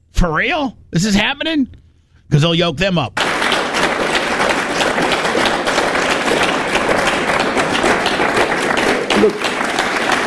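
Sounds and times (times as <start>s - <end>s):
speech: 0.2s - 3.4s, 9.2s - 9.5s
audience clapping: 3.2s - 10.2s.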